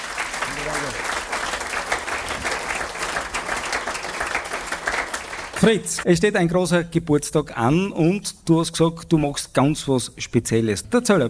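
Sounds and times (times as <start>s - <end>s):
audience applause: 0.0s - 6.0s
speech: 0.6s - 1.2s, 5.6s - 11.2s.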